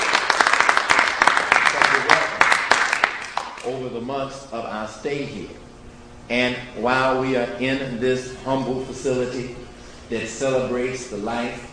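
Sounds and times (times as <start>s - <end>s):
audience applause: 0.0s - 3.6s
speech: 3.7s - 5.7s, 6.3s - 11.7s.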